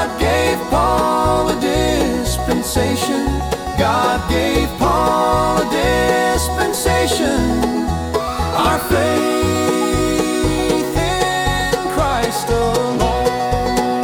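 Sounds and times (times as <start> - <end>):
banjo: 0.0 - 14.0
bluegrass music: 0.0 - 14.0
piano: 0.0 - 14.0.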